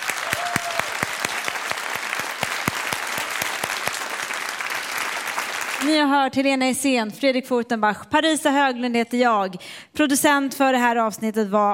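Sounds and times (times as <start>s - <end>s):
audience applause: 0.0s - 5.9s
speech: 5.8s - 11.7s.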